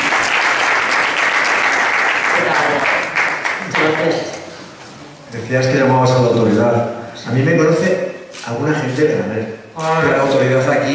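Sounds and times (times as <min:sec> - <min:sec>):
audience applause: 0:00.0 - 0:04.2
speech: 0:05.5 - 0:10.9.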